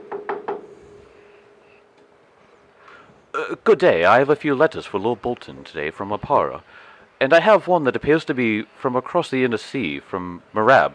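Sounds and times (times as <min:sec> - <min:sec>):
knocking on a wooden door: 0:00.0 - 0:00.8
faint hum: 0:00.0 - 0:10.9
speech: 0:03.4 - 0:10.9.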